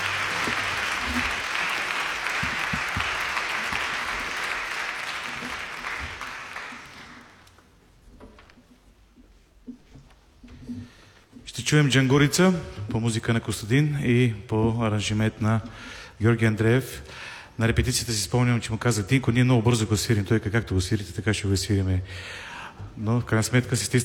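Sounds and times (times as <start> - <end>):
audience applause: 0.0 - 7.5
speech: 11.7 - 24.0.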